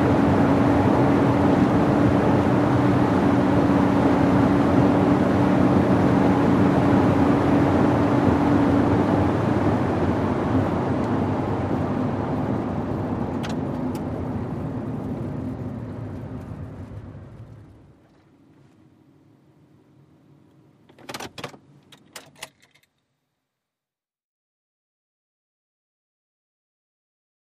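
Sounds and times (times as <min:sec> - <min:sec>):
SUV driving at 100 mph: 0:00.0 - 0:18.0.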